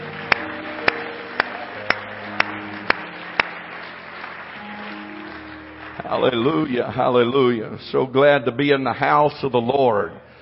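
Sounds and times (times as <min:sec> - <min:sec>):
audience clapping hands in praise: 0:00.0 - 0:07.5
speech: 0:06.1 - 0:10.3.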